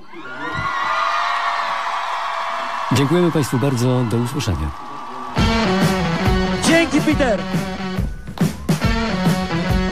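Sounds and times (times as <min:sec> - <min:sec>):
studio audience cheering and whooping at a live radio music chart show: 0:00.0 - 0:09.8
speech: 0:02.9 - 0:04.8, 0:07.0 - 0:07.8.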